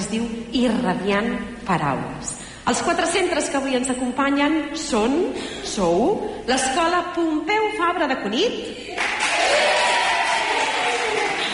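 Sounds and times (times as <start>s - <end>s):
speech: 0.1s - 8.8s
schoolchildren applauding at a school radio gathering: 9.0s - 11.5s.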